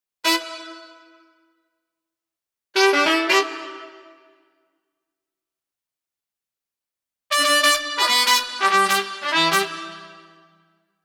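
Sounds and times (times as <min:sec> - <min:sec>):
horn: 0:00.2 - 0:01.2, 0:02.8 - 0:04.4, 0:07.3 - 0:10.6.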